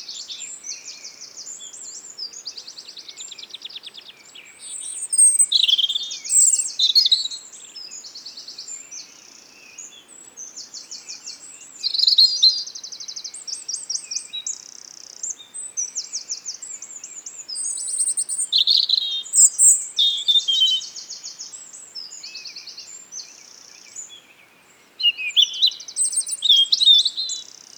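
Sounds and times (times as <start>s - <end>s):
European robin song: 0.0s - 27.7s.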